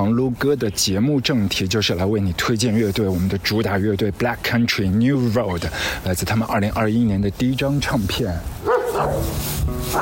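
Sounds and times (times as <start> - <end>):
speech: 0.0 - 9.9
dog barking aggressively: 8.6 - 9.9.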